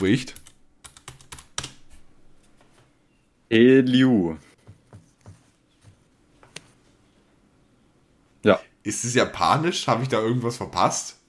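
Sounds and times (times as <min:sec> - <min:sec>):
speech: 0:00.0 - 0:00.5, 0:03.5 - 0:04.5, 0:08.4 - 0:11.2
typing on a computer keyboard: 0:00.3 - 0:01.8.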